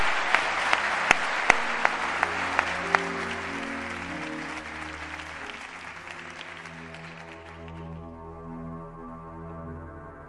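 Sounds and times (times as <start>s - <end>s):
audience applause: 0.0s - 8.1s.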